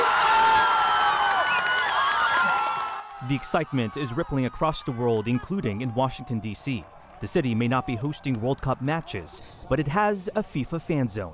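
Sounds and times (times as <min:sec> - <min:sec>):
shouts and whoops: 0:00.0 - 0:05.5
crowd cheering at football fan zone: 0:00.0 - 0:09.3
speech: 0:03.3 - 0:11.3.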